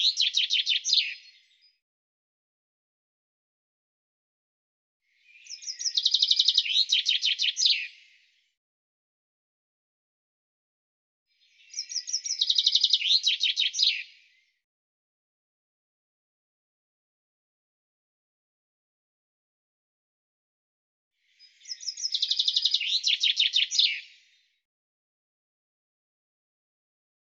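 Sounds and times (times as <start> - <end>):
bird song: 0.0 - 1.8, 5.0 - 8.6, 11.3 - 14.7, 21.2 - 24.7.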